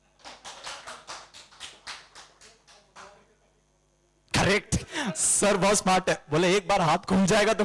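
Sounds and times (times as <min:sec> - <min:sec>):
hands clapping: 0:00.0 - 0:03.2
speech: 0:04.5 - 0:07.6.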